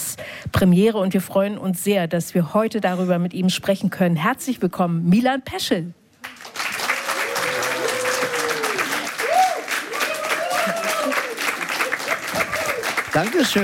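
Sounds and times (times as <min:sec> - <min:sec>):
speech: 0:00.6 - 0:06.0, 0:13.2 - 0:13.6
crowd applauding: 0:06.2 - 0:13.6.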